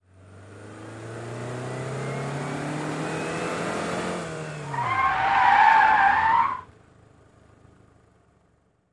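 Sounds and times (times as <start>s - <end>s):
sedan engine revving: 0.2s - 6.6s
sedan tyres skidding: 1.8s - 8.1s.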